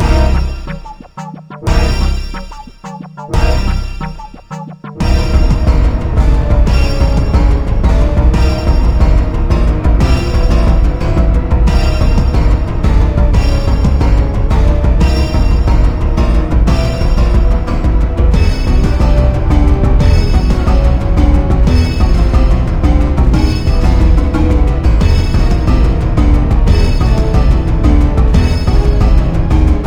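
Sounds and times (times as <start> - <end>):
chase music: 0.0 - 29.8.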